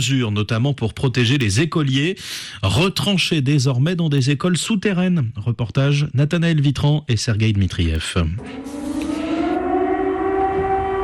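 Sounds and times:
speech: 0:00.0 - 0:08.8
air raid sirens wailing over a city: 0:08.4 - 0:11.0.

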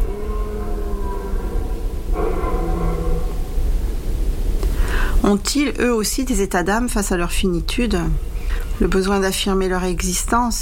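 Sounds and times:
red deer stags bellowing in rut: 0:00.0 - 0:03.8
hiss: 0:00.0 - 0:10.6
speech: 0:05.2 - 0:10.6.

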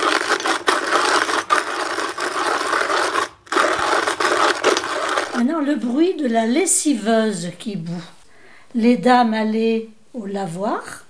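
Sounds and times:
manual coffee grinder: 0:00.0 - 0:06.0
speech: 0:05.4 - 0:11.0.

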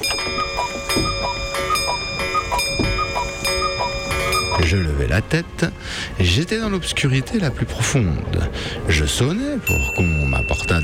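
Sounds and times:
pendulum clock striking the hour: 0:00.0 - 0:04.9
speech: 0:04.7 - 0:10.8.

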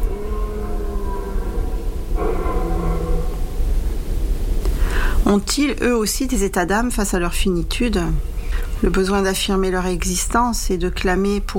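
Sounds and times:
red deer stags bellowing during rut: 0:00.0 - 0:04.0
speech: 0:05.3 - 0:11.5.

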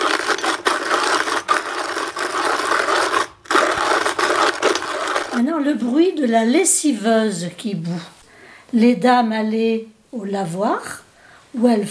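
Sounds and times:
manual coffee grinder grinding: 0:00.0 - 0:06.0
speech: 0:05.6 - 0:11.8.

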